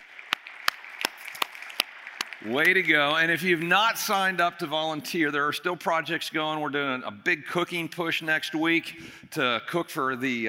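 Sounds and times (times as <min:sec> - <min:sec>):
audience round of applause: 0:00.0 - 0:03.6
speech: 0:02.4 - 0:10.4.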